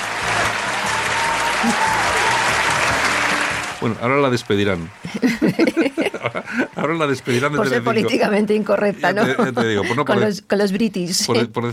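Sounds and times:
audience applause: 0:00.0 - 0:08.1
speech: 0:01.6 - 0:02.0, 0:03.8 - 0:11.7
laughter: 0:05.0 - 0:08.2, 0:08.8 - 0:10.3.

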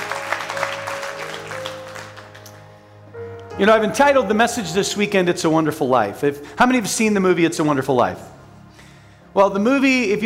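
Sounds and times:
church congregation applauding: 0:00.0 - 0:02.9
speech: 0:03.6 - 0:08.4, 0:09.4 - 0:10.2.

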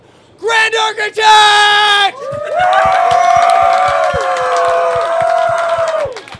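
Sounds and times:
speech: 0:00.7 - 0:03.3
loud round of applause: 0:01.8 - 0:06.3.

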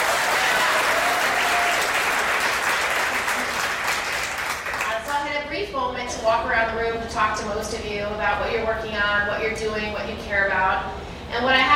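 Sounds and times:
audience applause: 0:00.0 - 0:05.0
speech: 0:06.3 - 0:11.7.

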